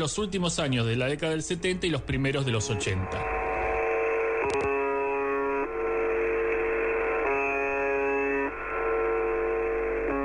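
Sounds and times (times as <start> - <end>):
speech: 0.0 - 3.4
radio static hiss: 0.6 - 10.2
shortwave radio station buzzer tone: 2.1 - 10.2.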